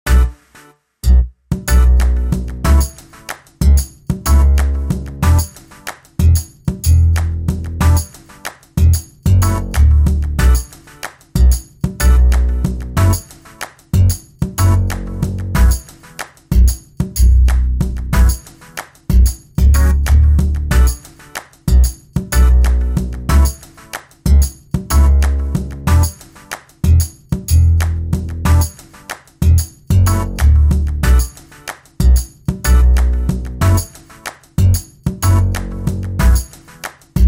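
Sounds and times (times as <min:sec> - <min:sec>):
funky beat: 0:00.1 - 0:37.2.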